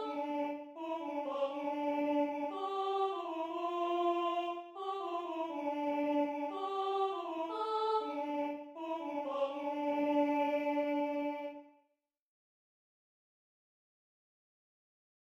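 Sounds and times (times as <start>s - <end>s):
soprano voice: 0.0s - 11.5s.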